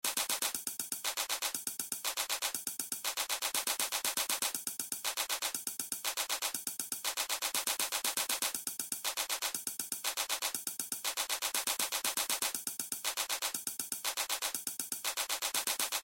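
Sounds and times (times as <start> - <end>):
music beat: 0.0 - 16.0.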